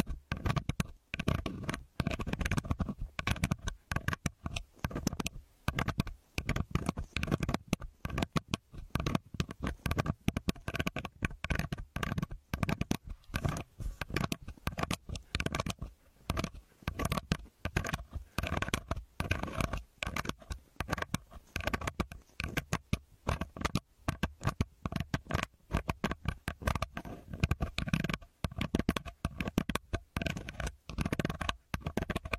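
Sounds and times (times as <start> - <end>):
earpick scraping and rubbing: 0.0 - 32.3.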